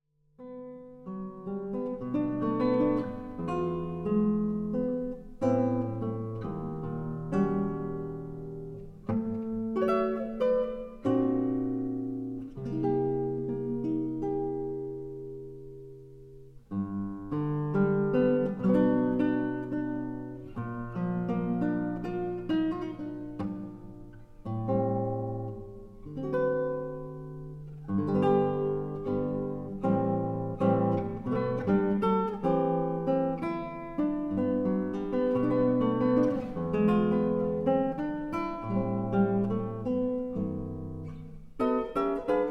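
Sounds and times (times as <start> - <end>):
guitar: 0.2 - 42.4.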